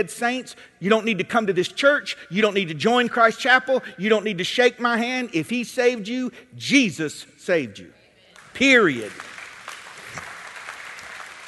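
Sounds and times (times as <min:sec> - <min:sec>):
speech: 0:00.0 - 0:08.0, 0:08.6 - 0:09.3
church audience clapping: 0:08.4 - 0:11.4.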